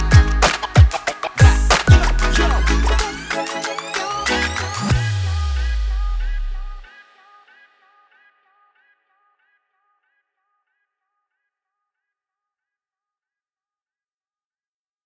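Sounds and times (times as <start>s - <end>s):
hip hop music: 0.0s - 7.5s.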